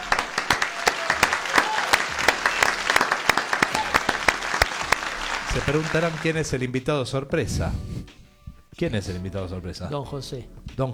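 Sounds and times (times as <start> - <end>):
loud applause: 0.0 - 6.5
speech: 5.6 - 8.2, 8.8 - 10.9.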